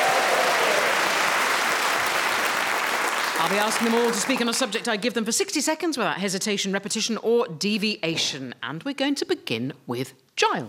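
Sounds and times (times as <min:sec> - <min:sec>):
live audience applauding: 0:00.0 - 0:05.1
speech: 0:03.4 - 0:10.6.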